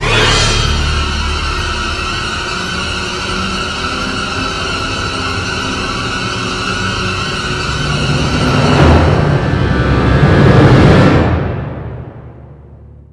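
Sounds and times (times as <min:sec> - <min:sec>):
high tension musical stinger: 0:00.0 - 0:13.0.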